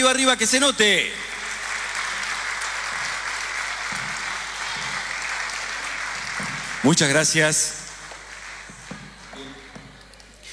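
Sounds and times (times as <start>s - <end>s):
speech: 0.1s - 1.3s, 6.8s - 7.8s
audience applause: 0.9s - 10.5s.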